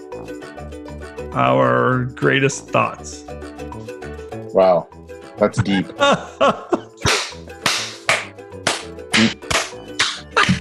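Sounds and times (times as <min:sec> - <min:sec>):
speech: 0:01.3 - 0:03.5, 0:04.5 - 0:06.8
laughter: 0:05.6 - 0:07.2, 0:10.3 - 0:10.5
hand claps: 0:07.0 - 0:10.5.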